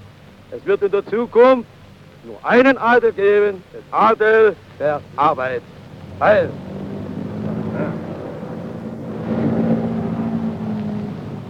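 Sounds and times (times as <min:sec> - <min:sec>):
speech: 0:00.5 - 0:06.7
three-engine Junkers aircraft approaching: 0:04.8 - 0:11.4.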